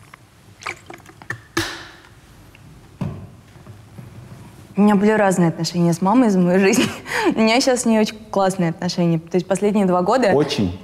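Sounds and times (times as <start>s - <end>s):
water poured with clinks and splashes: 0.0s - 1.6s
speech: 4.8s - 10.8s.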